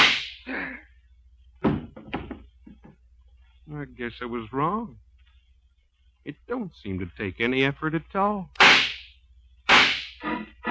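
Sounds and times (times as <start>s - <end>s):
speech: 3.7s - 5.0s, 6.3s - 8.6s
revolver gunshot in a radio drama: 8.6s - 9.1s, 9.7s - 10.2s.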